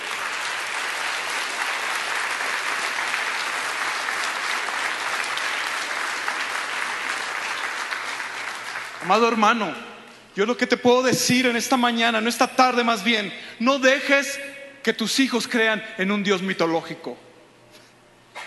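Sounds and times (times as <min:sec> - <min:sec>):
audience applauding: 0:00.0 - 0:09.4
speech: 0:09.1 - 0:17.2.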